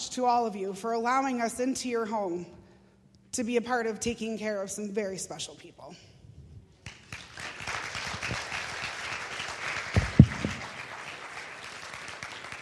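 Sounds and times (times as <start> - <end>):
speech: 0.1 - 2.6, 3.3 - 6.2
audience applause: 6.9 - 12.5.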